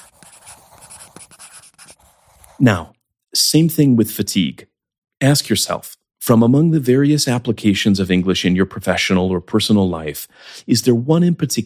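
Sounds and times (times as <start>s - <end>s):
writing by hand: 0.0s - 2.6s
speech: 2.6s - 11.6s.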